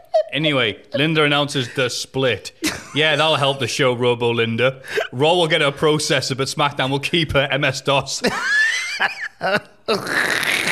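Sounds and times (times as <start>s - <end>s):
speech: 0.3s - 10.5s
fart sound effect: 10.0s - 10.7s.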